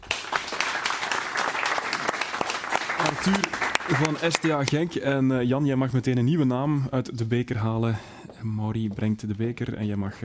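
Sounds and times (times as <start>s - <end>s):
audience applause: 0.0s - 4.9s
speech: 3.0s - 10.2s.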